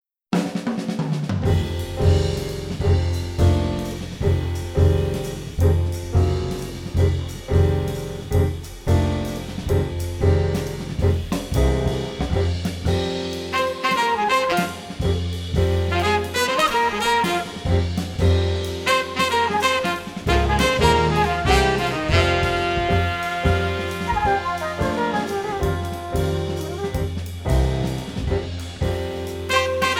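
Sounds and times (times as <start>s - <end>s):
blues music: 1.3s - 29.9s.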